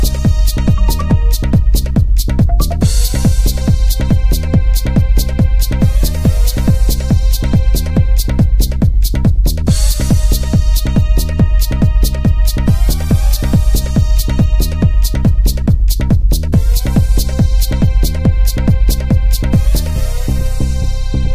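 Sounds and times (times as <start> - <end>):
techno trance music: 0.0 - 21.2.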